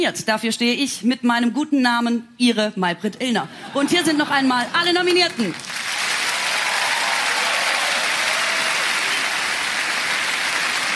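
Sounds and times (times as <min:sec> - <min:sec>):
speech: 0:00.0 - 0:05.8
crowd applause: 0:04.9 - 0:10.9.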